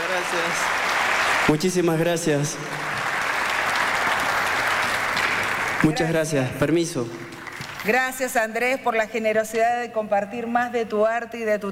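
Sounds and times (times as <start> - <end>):
audience applause honouring a singer after his performance: 0.0 - 6.5, 7.2 - 8.0
speech: 0.2 - 0.9, 1.5 - 3.0, 5.8 - 11.7.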